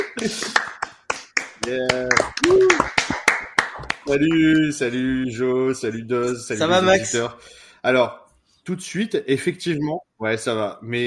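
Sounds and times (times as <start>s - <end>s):
laughter: 0.0s - 0.8s
audience applause: 0.0s - 4.6s
speech: 0.2s - 0.7s, 1.6s - 3.0s, 4.1s - 11.0s.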